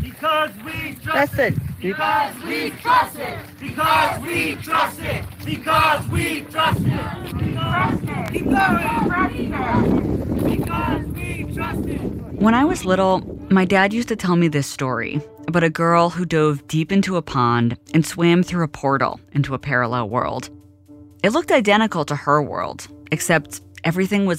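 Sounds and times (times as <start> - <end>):
large crowd chanting in unison: 0.2 - 12.2
speech: 0.2 - 20.6, 21.2 - 24.3.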